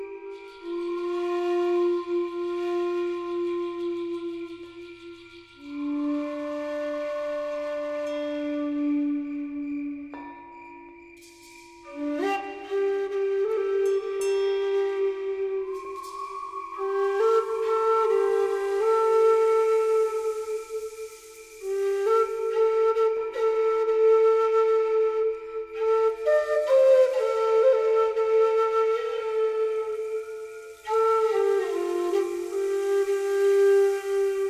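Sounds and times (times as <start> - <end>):
cricket chirping: 0.0 - 2.0, 3.2 - 6.8, 8.1 - 12.9, 13.8 - 18.8, 19.4 - 22.6, 30.0 - 34.1
flute: 0.0 - 34.4.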